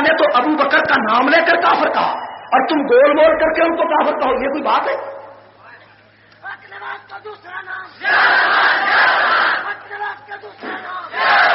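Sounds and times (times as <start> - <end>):
speech: 1.1 - 5.2, 7.2 - 9.3
crowd shouting slogans: 7.9 - 10.0, 10.6 - 11.5.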